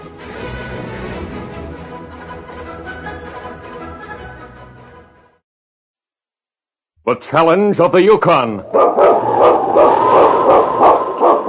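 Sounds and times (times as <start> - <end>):
speech: 7.1 - 9.6
sled dogs barking: 8.6 - 11.4.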